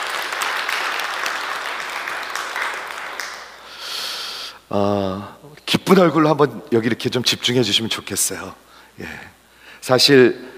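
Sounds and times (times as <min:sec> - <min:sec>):
audience applause: 0:00.0 - 0:03.7
speech: 0:04.7 - 0:10.5.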